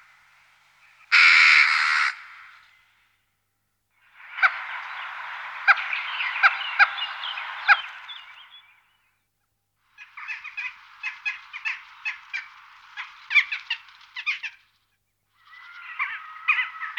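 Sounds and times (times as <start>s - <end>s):
western jackdaw calls: 0.8s - 2.8s, 4.0s - 8.8s, 9.9s - 16.9s.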